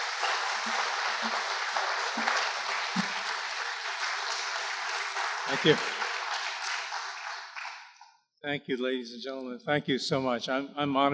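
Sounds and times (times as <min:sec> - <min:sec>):
audience applause: 0:00.0 - 0:08.0
speech: 0:05.5 - 0:06.0, 0:08.5 - 0:11.1.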